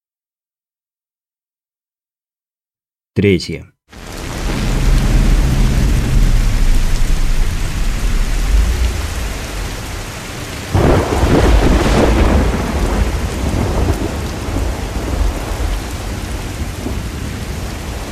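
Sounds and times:
speech: 3.2s - 3.7s
heavy rain: 3.9s - 18.1s
thunderstorm: 4.0s - 18.1s.

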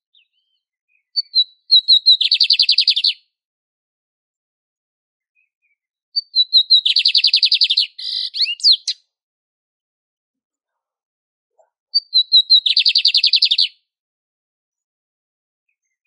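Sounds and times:
lined seedeater song with rhythmic trill: 0.0s - 3.4s, 5.2s - 9.1s, 11.6s - 13.9s, 15.7s - 16.0s.

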